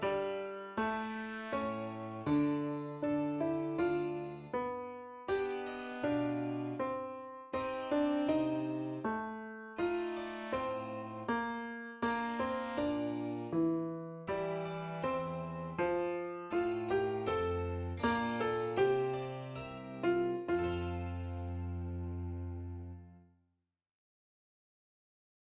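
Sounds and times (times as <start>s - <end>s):
sarabande music: 0.0s - 9.2s, 9.8s - 11.3s, 12.0s - 23.1s.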